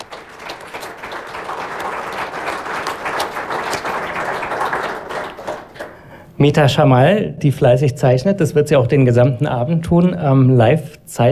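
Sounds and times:
audience applause: 0.0s - 6.1s
speech: 6.4s - 11.3s.

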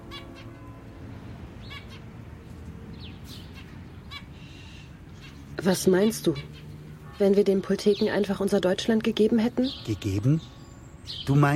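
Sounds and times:
zebra finches chirping: 1.6s - 2.1s, 2.9s - 11.5s
speech: 5.6s - 6.6s, 7.2s - 11.5s.

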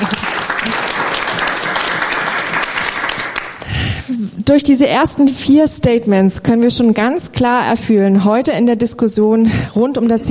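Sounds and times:
audience applause: 0.0s - 4.0s
speech: 4.5s - 10.3s.

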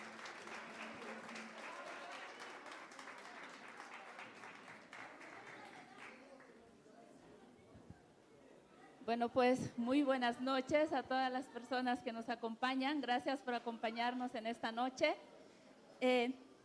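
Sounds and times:
audience applause: 0.0s - 6.5s
speech: 9.0s - 15.3s, 16.0s - 16.4s.

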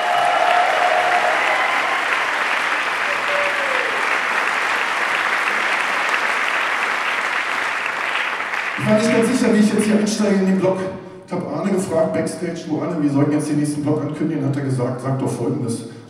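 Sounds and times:
audience applause for trumpet player: 0.0s - 9.5s
speech: 8.9s - 16.0s.

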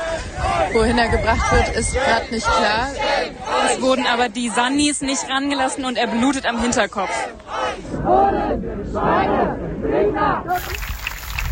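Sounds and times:
speech: 0.7s - 10.9s
protest crowd clapping: 10.5s - 11.4s.

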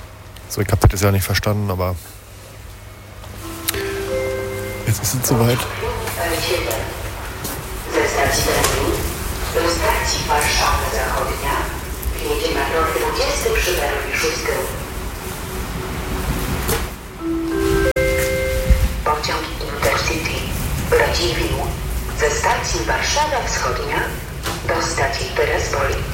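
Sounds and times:
speech: 0.5s - 2.2s, 4.9s - 7.0s, 8.3s - 11.6s, 12.2s - 14.8s, 19.2s - 26.1s
S-Bahn commuter train pulling into station: 2.0s - 26.1s.

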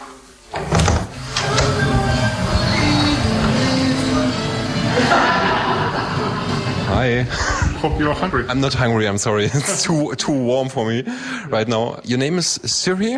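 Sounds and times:
old door pushed open: 0.5s - 4.1s
laughter: 3.0s - 10.3s
speech: 7.0s - 13.1s.

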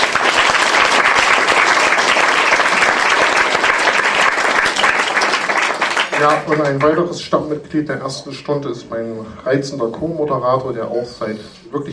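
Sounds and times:
audience applause: 0.0s - 7.0s
speech: 6.2s - 11.9s.

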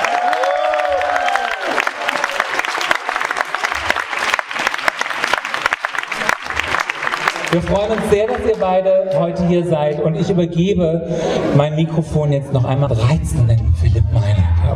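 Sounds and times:
audience applause: 0.0s - 8.8s
speech: 7.5s - 14.2s.

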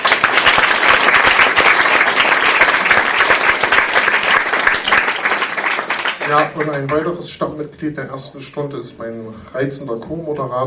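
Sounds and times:
audience applause: 0.0s - 7.0s
speech: 6.3s - 10.6s.

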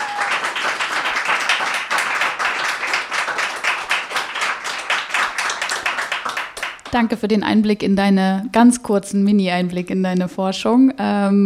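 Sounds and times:
audience applause: 0.0s - 6.9s
speech: 6.9s - 11.4s.

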